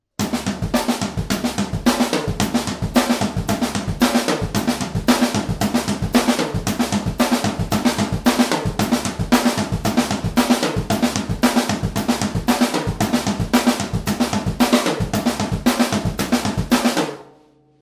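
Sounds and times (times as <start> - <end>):
all-purpose drum break by drummer: 0.2 - 17.3.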